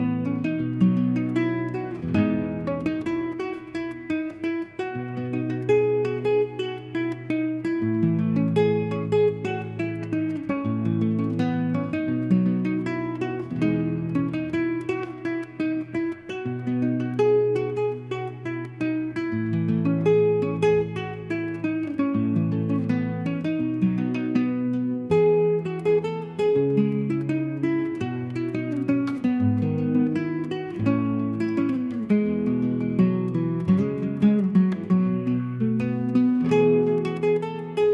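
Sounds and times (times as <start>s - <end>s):
relaxing soft guitar melody: 0.0s - 37.9s.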